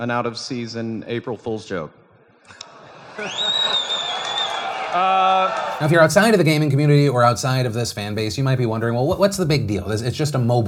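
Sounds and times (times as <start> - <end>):
speech: 0.0 - 2.6, 3.2 - 4.3, 4.9 - 10.6
crowd cheering: 3.0 - 6.4.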